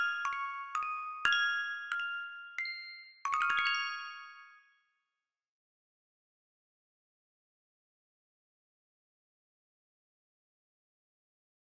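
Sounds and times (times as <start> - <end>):
Christmas song: 0.0 - 5.0.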